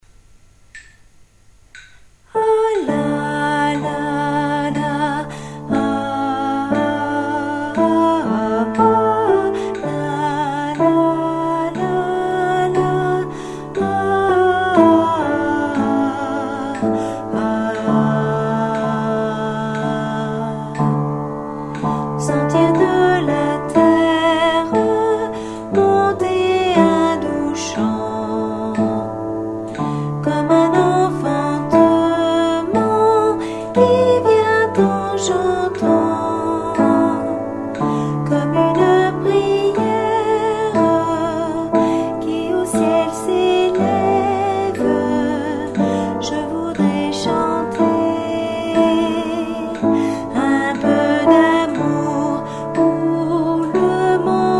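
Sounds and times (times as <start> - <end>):
alto part at tempo 60: 1.8 - 54.5.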